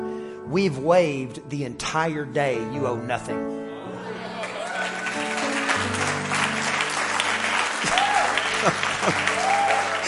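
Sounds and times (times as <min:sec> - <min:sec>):
speech: 0:00.5 - 0:03.6, 0:08.6 - 0:09.3
laughter: 0:04.0 - 0:05.2, 0:07.8 - 0:10.0
audience clapping: 0:04.2 - 0:10.0.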